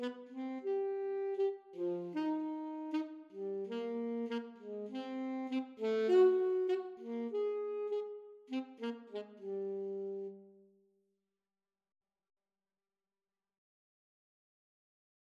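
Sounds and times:
alto saxophone duet: 0.0s - 10.6s.

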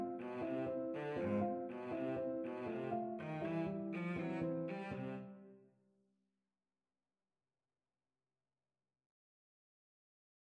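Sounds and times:
cello: 0.0s - 5.7s.

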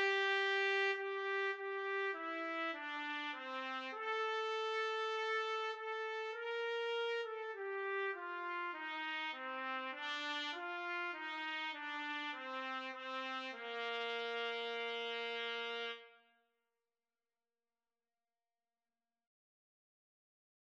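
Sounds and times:
trumpet duet: 0.0s - 16.2s.

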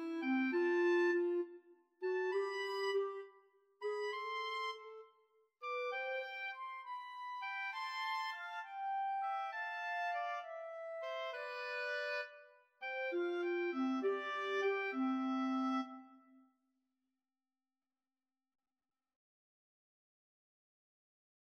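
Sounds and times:
oboe in a pastoral piece: 0.0s - 16.2s
clarinet in a pastoral piece: 0.0s - 16.4s
flute in a pastoral piece: 0.0s - 16.4s.

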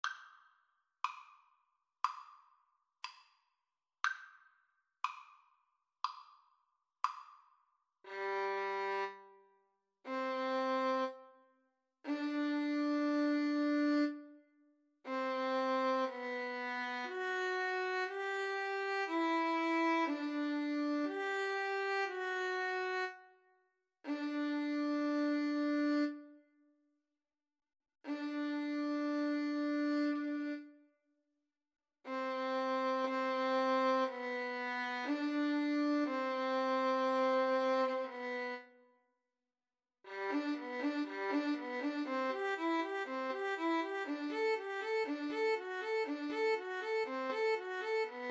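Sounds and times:
romantic violin and flute duet: 8.1s - 9.2s, 10.1s - 11.2s, 12.1s - 14.3s, 15.1s - 23.2s, 24.1s - 26.3s, 28.1s - 30.7s, 32.1s - 38.7s, 40.1s - 48.2s.

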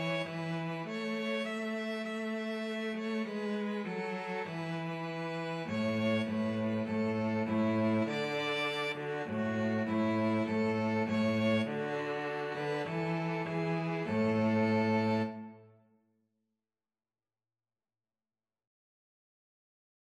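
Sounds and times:
cello: 0.0s - 15.7s
two violins: 0.0s - 15.8s.

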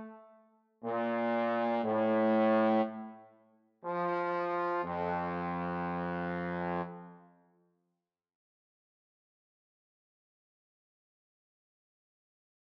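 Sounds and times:
adagio trombone duet: 0.8s - 3.0s, 3.8s - 7.0s.

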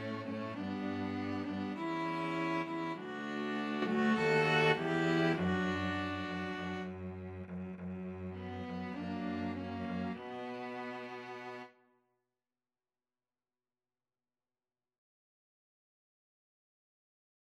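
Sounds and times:
string trio playing: 0.0s - 11.7s.

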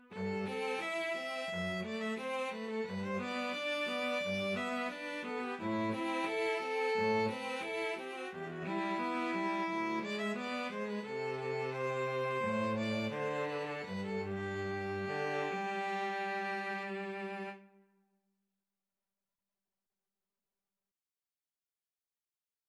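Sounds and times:
string trio playing: 0.0s - 17.6s.

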